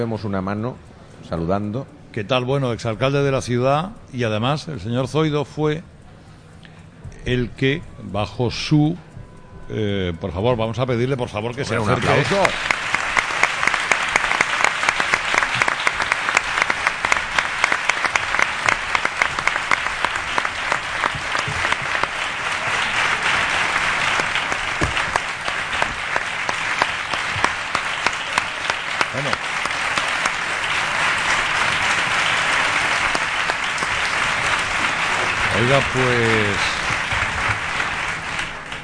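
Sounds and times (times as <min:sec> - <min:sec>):
speech: 0:00.0 - 0:05.9, 0:07.2 - 0:09.1, 0:09.7 - 0:12.6
audience applause: 0:11.7 - 0:38.8.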